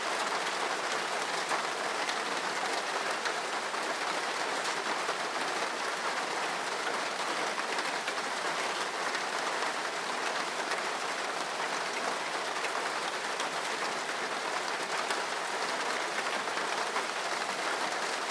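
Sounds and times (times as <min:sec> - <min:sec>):
rain falling steadily on a rooftop: 0:00.0 - 0:18.3.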